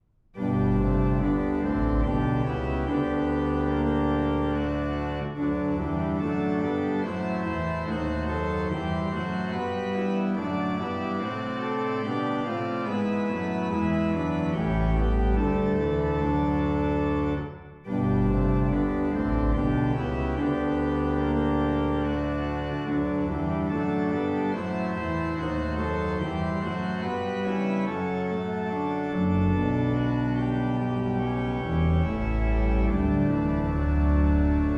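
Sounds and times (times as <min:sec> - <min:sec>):
organ chorale: 0:00.4 - 0:34.7.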